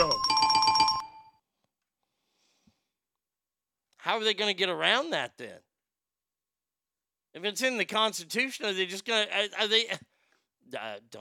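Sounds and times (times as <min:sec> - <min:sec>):
double bells ringing: 0:00.0 - 0:01.3
speech: 0:04.1 - 0:05.7, 0:07.3 - 0:10.1, 0:10.7 - 0:11.1.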